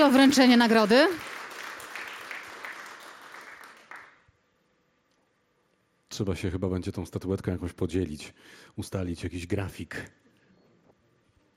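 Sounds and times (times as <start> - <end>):
speech: 0.0 - 1.3, 6.1 - 10.2
applause at an award presentation: 0.0 - 4.3.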